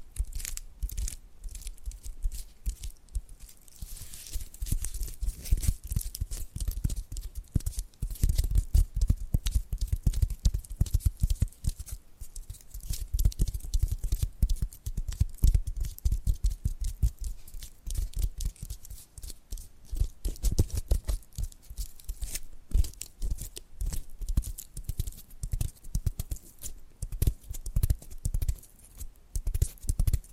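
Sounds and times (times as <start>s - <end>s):
tapping and scratching: 0.0s - 30.3s.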